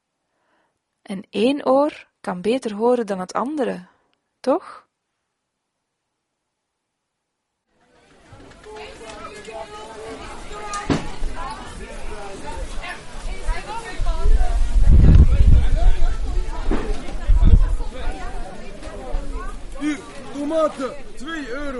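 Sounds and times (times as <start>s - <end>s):
speech: 1.1s - 4.8s, 20.5s - 21.7s
busy Saturday market crowd chatter: 7.8s - 21.7s.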